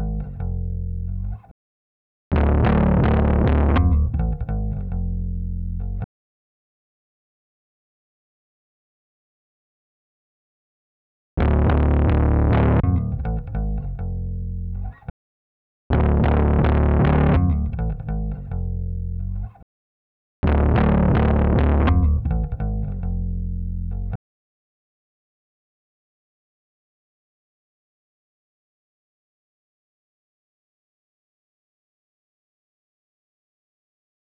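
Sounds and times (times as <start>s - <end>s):
bass: 0.0s - 1.5s, 2.3s - 6.1s, 11.4s - 15.1s, 15.9s - 19.6s, 20.4s - 24.2s.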